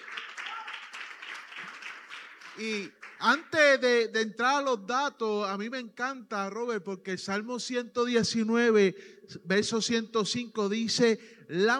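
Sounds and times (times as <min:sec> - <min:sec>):
church congregation applauding celebrating Bible month: 0:00.0 - 0:03.9
speech: 0:02.6 - 0:11.7.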